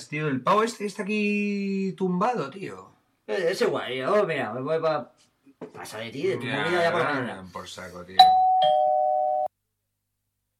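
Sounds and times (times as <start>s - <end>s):
speech: 0.1s - 8.9s
doorbell ringing at the front door: 8.2s - 9.5s.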